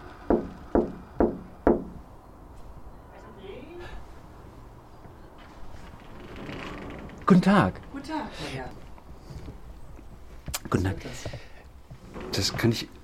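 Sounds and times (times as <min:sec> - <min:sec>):
knocking on a glass pane: 0:00.3 - 0:02.0
speech: 0:07.3 - 0:08.8, 0:10.7 - 0:11.5, 0:12.3 - 0:13.0.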